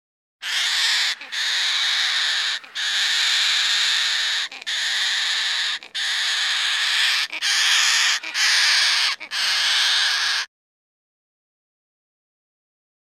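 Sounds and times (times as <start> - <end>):
Goffin's cockatoo screeching: 0.4 - 10.5.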